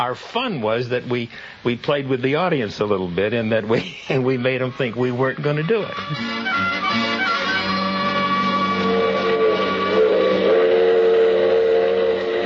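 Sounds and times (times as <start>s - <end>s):
speech: 0.0s - 7.1s
steam train whistle: 6.1s - 12.4s.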